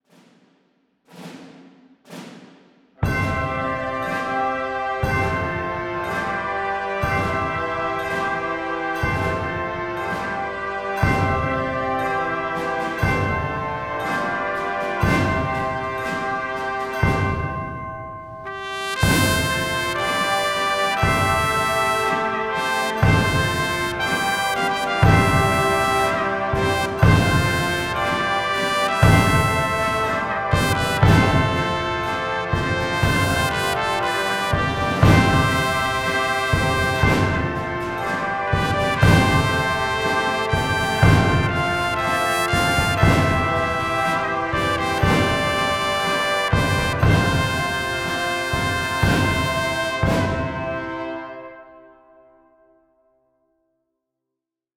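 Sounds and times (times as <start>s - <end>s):
Christmas-style music: 3.0s - 52.6s.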